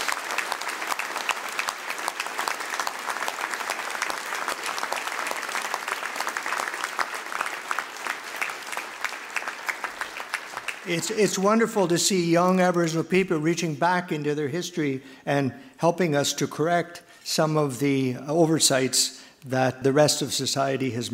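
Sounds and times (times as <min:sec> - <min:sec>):
round of applause: 0:00.0 - 0:11.5
speech: 0:10.9 - 0:21.1.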